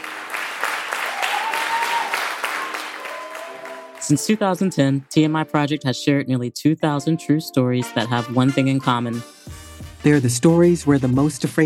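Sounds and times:
audience applause welcoming a live storytelling show: 0.0 - 5.0
speech: 4.1 - 11.6.

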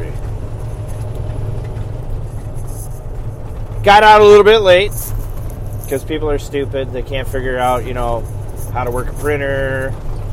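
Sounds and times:
road noise: 0.0 - 10.3
semi truck engine rumble: 0.0 - 10.3
speech: 3.8 - 5.1, 5.9 - 10.1.

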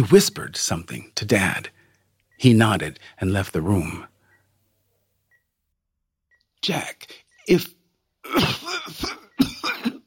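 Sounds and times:
speech: 0.0 - 1.8, 2.4 - 4.1, 6.6 - 9.2
woman clearing her throat: 8.2 - 10.0
woman coughing in a fit: 8.3 - 10.0.

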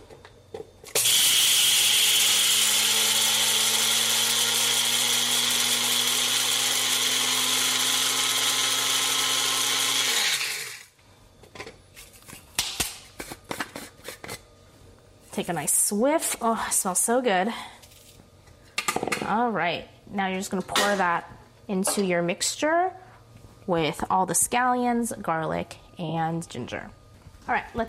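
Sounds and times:
grinding red Sichuan and white peppercorns in a spice grinder: 0.9 - 11.0
speech: 15.4 - 17.8, 19.3 - 23.0, 23.7 - 27.8.

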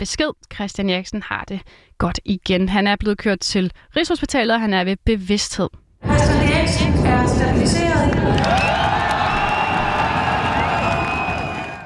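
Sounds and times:
speech: 0.0 - 9.0
large stadium crowd cheering: 6.0 - 11.8.

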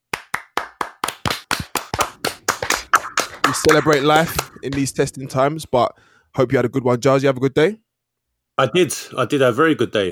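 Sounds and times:
group clapping for a birthday: 0.0 - 5.0
speech: 3.5 - 7.8, 8.6 - 10.0.

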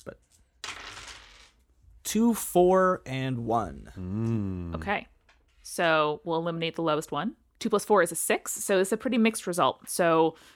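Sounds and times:
speech: 0.0 - 0.3, 2.1 - 5.1, 5.7 - 10.5
three dice rattling on a hard surface: 0.6 - 1.6.

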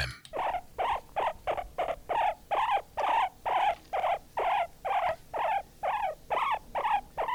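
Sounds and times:
guinea pig squeaking: 0.0 - 7.3.

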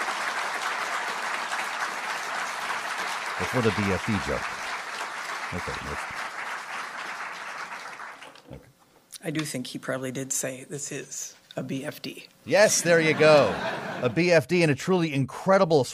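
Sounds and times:
audience applause: 0.0 - 8.5
laughter: 3.4 - 4.5, 5.6 - 6.2, 12.7 - 14.4
speech: 3.4 - 4.6, 5.5 - 6.2, 9.2 - 15.9.

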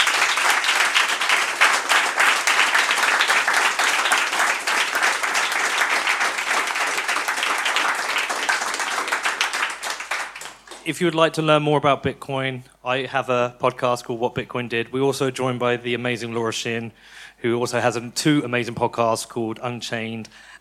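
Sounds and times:
audience applause: 0.0 - 10.9
speech: 10.9 - 20.6.

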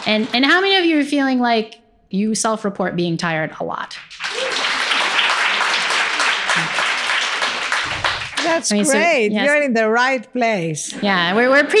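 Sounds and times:
audience clapping: 0.0 - 1.0, 3.9 - 9.1
speech: 0.1 - 4.2, 8.4 - 11.7.

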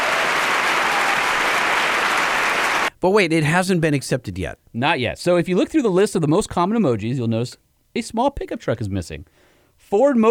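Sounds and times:
crowd cheering, hooting and applauding: 0.0 - 2.9
speech: 3.0 - 10.2.

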